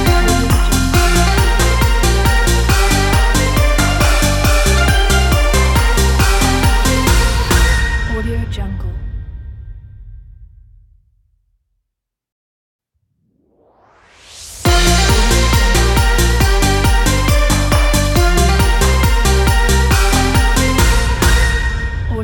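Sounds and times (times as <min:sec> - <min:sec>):
Chinese New Year party logo jingle: 0:00.0 - 0:08.3, 0:14.7 - 0:22.1.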